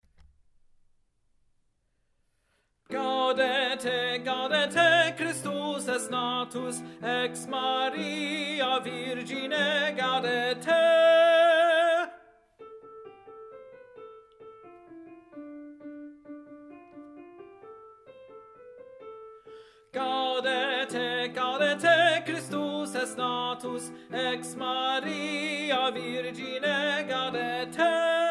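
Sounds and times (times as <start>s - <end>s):
tenor singing: 2.9s - 12.3s, 20.0s - 28.2s.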